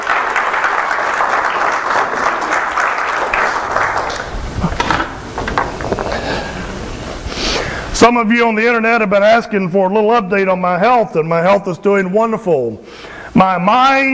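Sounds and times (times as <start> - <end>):
audience applause: 0.0 - 7.0
speech: 8.0 - 14.1.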